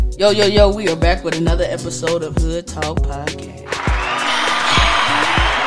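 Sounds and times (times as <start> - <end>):
speech: 0.2 - 3.5
crowd cheering sound effect: 3.7 - 5.6.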